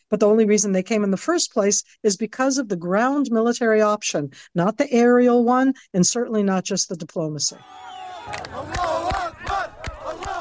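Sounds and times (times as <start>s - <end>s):
speech: 0.1s - 8.8s
crowd celebrating freed Palestinian prisoners in Ramallah, West Bank: 7.6s - 10.3s.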